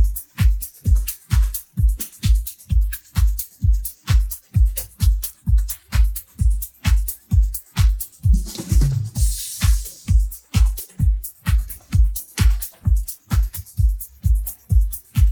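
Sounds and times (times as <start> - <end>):
drum: 0.0 - 15.3.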